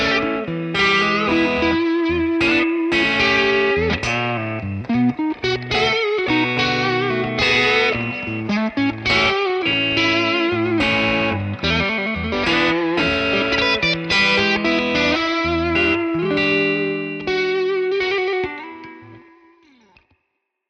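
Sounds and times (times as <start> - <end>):
electric guitar playing blues through a hot amplifier: 0.0 - 20.1.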